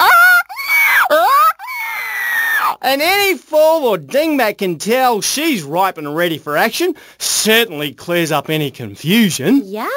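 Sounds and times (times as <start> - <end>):
human voice imitating a female forker monkey's call: 0.0 - 2.8
speech: 2.8 - 9.9.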